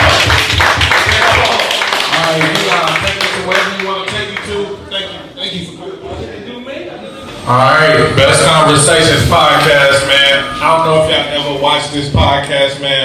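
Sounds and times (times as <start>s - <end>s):
round of applause: 0.0s - 4.6s
speech: 7.5s - 13.0s.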